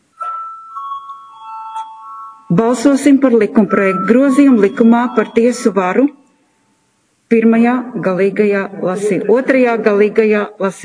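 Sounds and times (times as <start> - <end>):
bell rung to call a vote: 0.2 - 6.9
speech: 2.5 - 6.2, 7.3 - 10.8.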